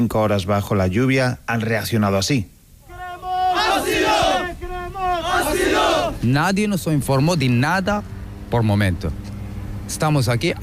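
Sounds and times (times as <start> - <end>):
speech: 0.0 - 2.6, 5.2 - 9.3, 9.9 - 10.6
crowd shouting, demanding asylum: 2.8 - 6.2.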